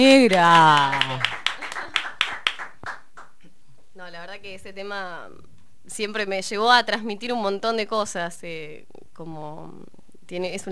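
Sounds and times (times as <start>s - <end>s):
speech: 0.0s - 1.3s, 4.4s - 10.6s
light studio applause from a few people: 0.2s - 3.4s.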